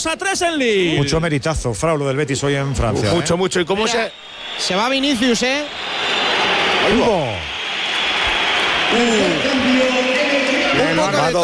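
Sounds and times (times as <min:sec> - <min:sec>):
speech: 0:00.0 - 0:06.2, 0:06.9 - 0:07.4, 0:08.9 - 0:09.5, 0:11.2 - 0:11.4
large stadium crowd applauding and cheering: 0:03.7 - 0:11.4.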